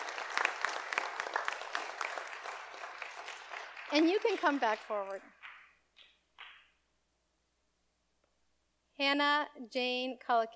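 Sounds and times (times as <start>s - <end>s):
audience applauding: 0.0s - 5.7s
speech: 3.9s - 5.4s, 9.0s - 10.5s.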